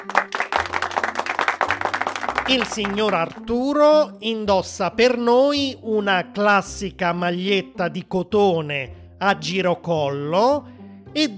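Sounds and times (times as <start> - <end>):
audience applause: 0.0 - 3.4
speech: 2.5 - 11.3.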